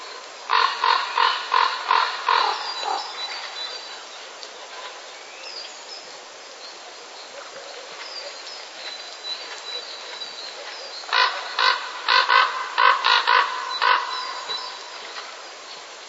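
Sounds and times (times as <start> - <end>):
common raven courtship calls: 0.1 - 3.5, 11.0 - 15.3.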